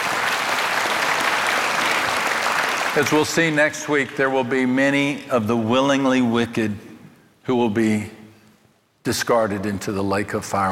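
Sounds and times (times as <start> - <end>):
congregation applauding during a sermon: 0.0 - 4.1
speech: 3.0 - 8.2, 9.0 - 10.7.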